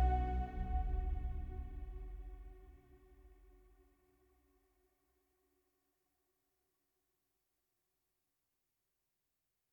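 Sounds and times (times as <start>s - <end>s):
music: 0.0s - 2.6s.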